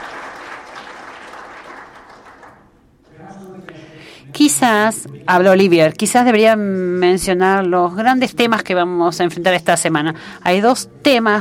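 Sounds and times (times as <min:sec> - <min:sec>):
audience applause: 0:00.0 - 0:02.7
speech: 0:04.3 - 0:11.3.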